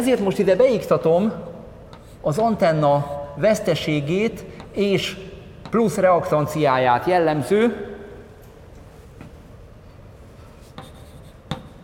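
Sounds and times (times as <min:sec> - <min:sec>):
speech: 0:00.0 - 0:01.5, 0:02.2 - 0:07.9
writing on a board during a lecture: 0:01.9 - 0:02.2, 0:10.6 - 0:11.8.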